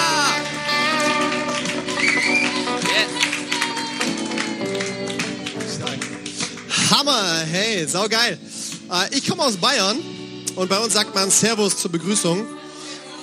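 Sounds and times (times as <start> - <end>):
audience applause welcoming a guest: 0.0 - 7.2
speech: 7.2 - 12.6.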